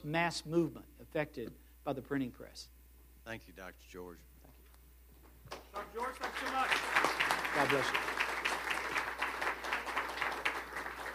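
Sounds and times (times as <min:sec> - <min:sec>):
speech: 0:00.0 - 0:04.3, 0:05.8 - 0:06.9, 0:07.6 - 0:08.2
audience applause: 0:05.6 - 0:11.1.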